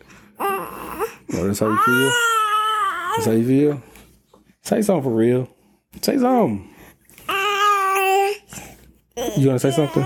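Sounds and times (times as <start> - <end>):
fussy toddler girl whining: 0.4 - 3.4, 7.3 - 8.5, 9.2 - 10.0
speech: 1.4 - 2.4, 3.2 - 3.9, 4.7 - 6.7, 9.3 - 10.0.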